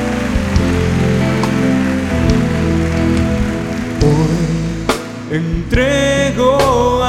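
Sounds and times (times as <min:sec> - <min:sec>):
audience applauding: 0:00.0 - 0:05.6
speech: 0:05.4 - 0:06.9.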